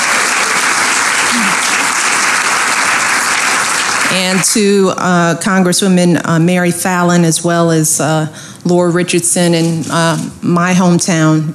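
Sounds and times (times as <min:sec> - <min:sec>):
audience with Coast Guard members applauding: 0:00.0 - 0:04.7
person whooping: 0:01.2 - 0:01.9
speech: 0:04.1 - 0:11.5.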